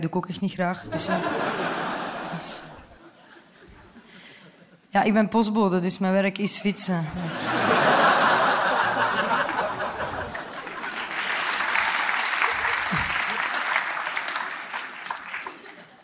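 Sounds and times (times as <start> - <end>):
speech: 0.0 - 2.8, 4.9 - 8.4
laughter: 0.9 - 4.9, 7.1 - 11.3, 12.4 - 13.9
crowd applauding: 7.8 - 16.0.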